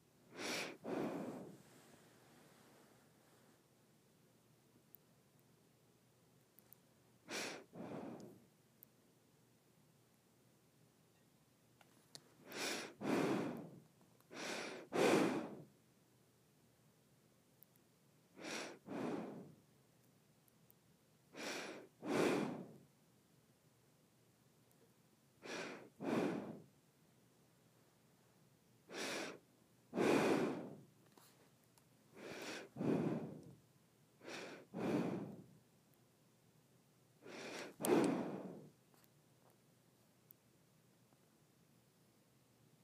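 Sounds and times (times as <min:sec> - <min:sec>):
breaths drawn and pushed through the nose: 0:00.3 - 0:02.7, 0:07.3 - 0:08.4, 0:12.4 - 0:15.7, 0:18.4 - 0:19.6, 0:21.3 - 0:22.8, 0:25.4 - 0:26.7, 0:28.9 - 0:30.9, 0:32.2 - 0:33.6, 0:34.2 - 0:35.5, 0:37.2 - 0:38.7.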